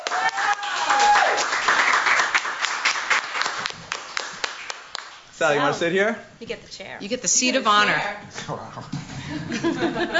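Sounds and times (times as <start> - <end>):
audience applause: 0.0 - 5.0
speech: 5.4 - 10.1
laughter: 9.0 - 10.1.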